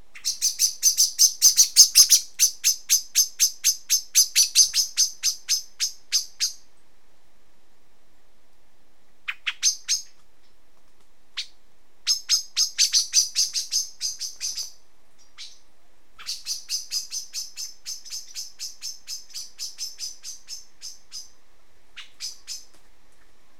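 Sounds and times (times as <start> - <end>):
common blackbird chink calls: 0.1 - 6.7, 11.4 - 15.6, 16.2 - 21.4, 22.0 - 22.7.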